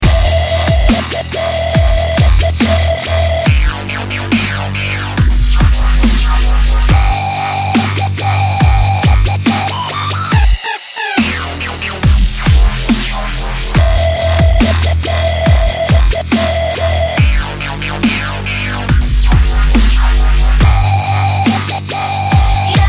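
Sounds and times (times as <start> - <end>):
dubstep music: 0.0 - 22.8.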